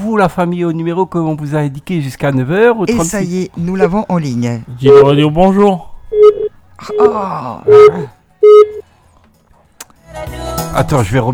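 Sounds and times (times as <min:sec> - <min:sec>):
speech: 0:00.1 - 0:08.8, 0:10.1 - 0:11.3
telephone line beeping: 0:04.9 - 0:05.2, 0:06.1 - 0:08.8
wavering moaning voice-like sound: 0:06.8 - 0:08.1.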